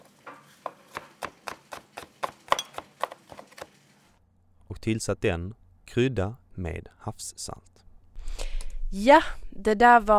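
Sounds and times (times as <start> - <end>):
knife chopping chili: 0.0 - 3.8
speech: 4.8 - 7.7, 8.9 - 10.1.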